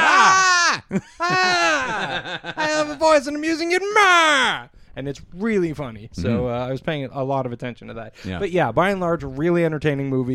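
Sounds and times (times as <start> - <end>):
voice imitating a baby's scream: 0.0 - 2.0
laughter: 0.0 - 3.2
speech: 0.9 - 1.6, 2.3 - 10.3
gasp: 8.2 - 8.4.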